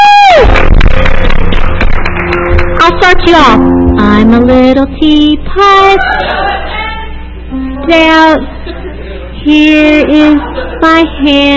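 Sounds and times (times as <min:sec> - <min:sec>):
audience applause: 0:00.2 - 0:02.7
speech: 0:03.2 - 0:06.3, 0:07.9 - 0:08.6, 0:09.4 - 0:11.5
laughter: 0:05.8 - 0:07.3, 0:08.4 - 0:11.2.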